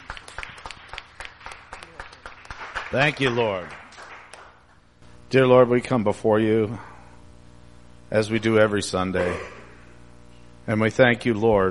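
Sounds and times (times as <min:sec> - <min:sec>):
audience applause: 0:00.0 - 0:04.6
speech: 0:02.9 - 0:03.8, 0:05.3 - 0:06.9, 0:08.1 - 0:09.6, 0:10.7 - 0:11.6.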